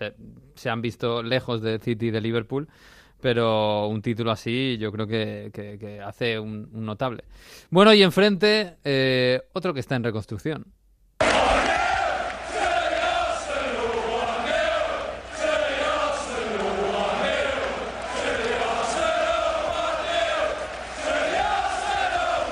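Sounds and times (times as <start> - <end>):
speech: 0.0 - 10.8
football fans chanting in stadium: 11.2 - 22.5.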